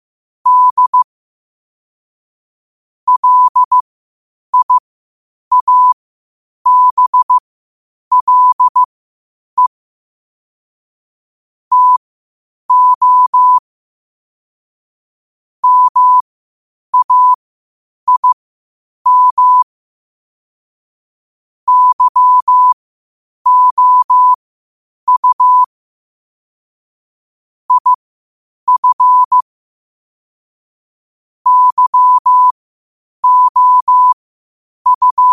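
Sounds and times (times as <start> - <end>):
morse code at 5 wpm: 0.5 - 1.0, 3.1 - 3.8, 4.6 - 4.8, 5.5 - 6.0, 6.7 - 7.4, 8.1 - 8.9, 11.7 - 12.0, 12.7 - 13.6, 15.6 - 16.2, 17.0 - 17.4, 18.1 - 18.4, 19.1 - 19.6, 21.7 - 22.8, 23.5 - 24.4, 25.1 - 25.7, 27.7 - 28.0, 28.7 - 29.4, 31.5 - 32.6, 33.2 - 34.2, 34.9 - 35.3.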